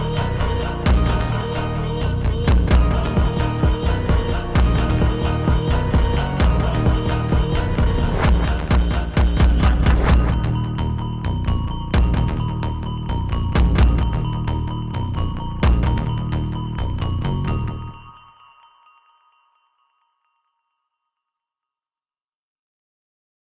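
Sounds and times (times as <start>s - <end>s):
drift phonk beat: 0.0s - 18.0s.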